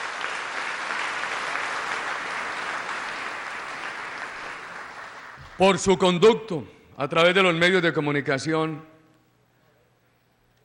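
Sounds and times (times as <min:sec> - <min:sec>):
applause: 0:00.0 - 0:05.9
speech: 0:05.6 - 0:08.9.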